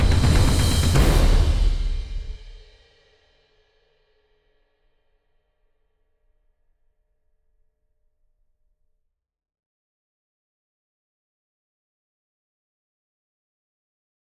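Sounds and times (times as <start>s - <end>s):
percussion: 0.0s - 3.2s.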